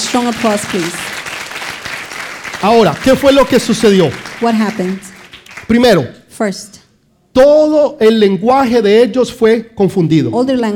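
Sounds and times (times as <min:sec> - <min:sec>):
audience applause: 0:00.0 - 0:05.8
speech: 0:00.1 - 0:01.1, 0:02.6 - 0:05.1, 0:05.7 - 0:06.8, 0:07.4 - 0:10.7.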